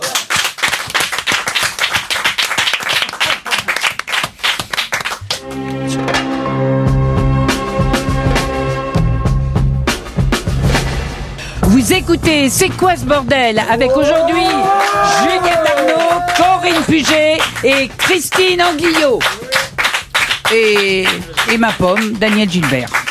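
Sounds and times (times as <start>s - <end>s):
small group clapping: 0.0s - 5.9s, 13.6s - 23.0s
music: 5.0s - 23.0s
speech: 12.0s - 19.5s, 20.5s - 23.0s.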